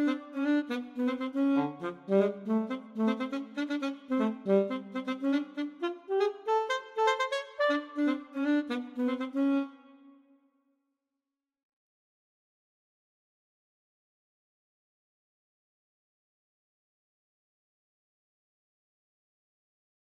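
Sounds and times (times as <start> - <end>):
alto saxophone: 0.0 - 10.3.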